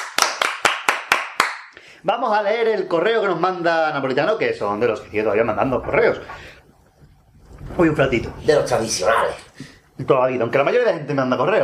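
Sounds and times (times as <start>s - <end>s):
hand claps: 0.0s - 1.8s
speech: 2.0s - 6.6s, 7.8s - 11.6s.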